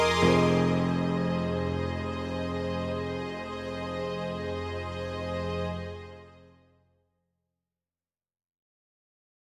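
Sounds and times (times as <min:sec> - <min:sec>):
piano: 0:00.0 - 0:06.5
strings: 0:00.0 - 0:06.6.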